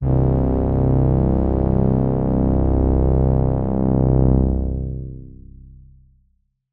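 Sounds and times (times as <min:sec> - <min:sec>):
Yamaha TX81Z synth pad: 0:00.0 - 0:05.9.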